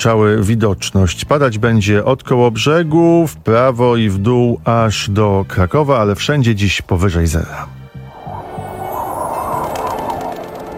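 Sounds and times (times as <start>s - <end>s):
speech: 0.0s - 7.8s
swans calling: 8.0s - 10.7s.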